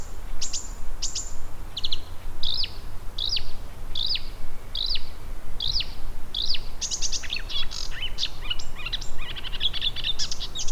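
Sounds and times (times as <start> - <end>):
spotted crake whistled calls: 0.0 - 10.7.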